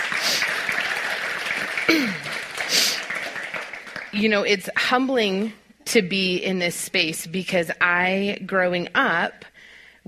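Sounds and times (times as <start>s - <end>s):
audience round of applause: 0.0s - 4.2s
speech: 1.9s - 2.3s, 4.2s - 10.0s.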